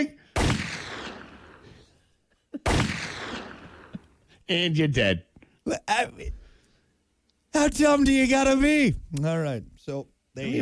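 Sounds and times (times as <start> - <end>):
shotgun blast in a video game: 0.4 - 1.8, 2.6 - 3.9
speech: 4.5 - 6.4, 7.6 - 10.6.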